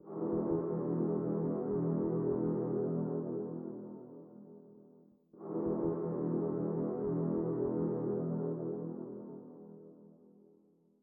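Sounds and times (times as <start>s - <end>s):
interactive music: 0.0s - 11.0s.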